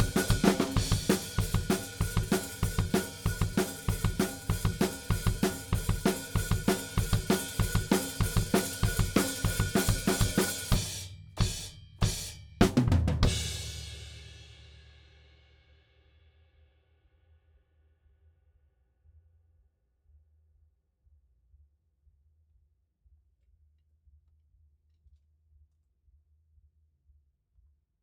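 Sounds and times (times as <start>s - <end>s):
drums: 0.0s - 15.8s.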